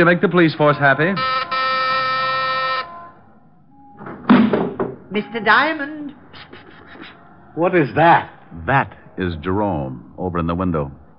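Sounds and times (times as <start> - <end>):
speech: 0.0 - 1.5, 5.2 - 6.2, 7.6 - 11.1
buzzing doorbell ringing: 1.2 - 3.2.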